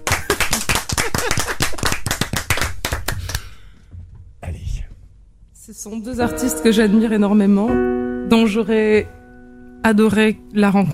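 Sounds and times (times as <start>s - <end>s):
audience applause: 0.0s - 3.4s
speech: 5.8s - 9.2s, 9.8s - 10.9s.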